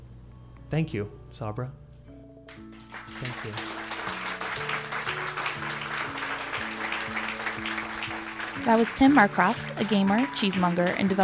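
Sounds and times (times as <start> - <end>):
music with a rising series of low notes: 0.0 - 11.2
speech: 0.7 - 1.8, 3.2 - 3.8, 8.6 - 11.2
crowd applauding: 2.5 - 11.2.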